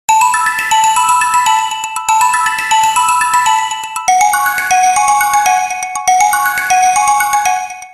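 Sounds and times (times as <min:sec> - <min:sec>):
ringtone melody: 0:00.1 - 0:07.9.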